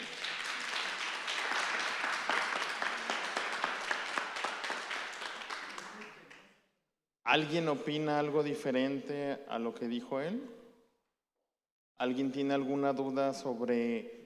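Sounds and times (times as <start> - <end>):
audience applause: 0.0 - 6.5
speech: 7.3 - 10.6, 12.0 - 14.2.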